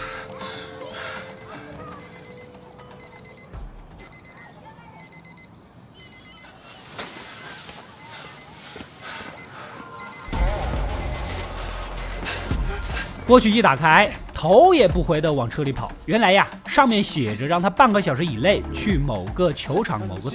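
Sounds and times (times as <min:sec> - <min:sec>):
alarm clock beeping in a trash can: 0:01.1 - 0:07.4, 0:08.0 - 0:14.9
deep rumble: 0:10.4 - 0:15.1
speech: 0:13.3 - 0:20.3.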